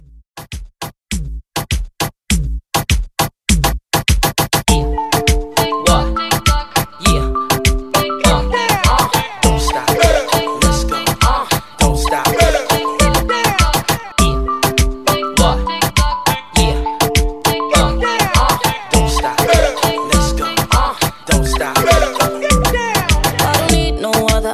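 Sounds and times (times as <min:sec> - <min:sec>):
dance drum beat: 0:00.0 - 0:24.5.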